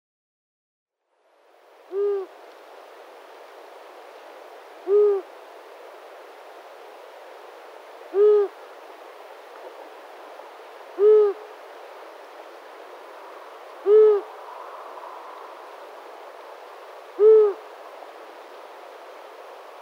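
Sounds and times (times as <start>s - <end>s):
Long-eared owl giving low short hoots: 1.9s - 2.4s, 4.8s - 5.3s, 8.1s - 8.6s, 10.9s - 11.5s, 13.8s - 15.7s, 17.1s - 17.7s.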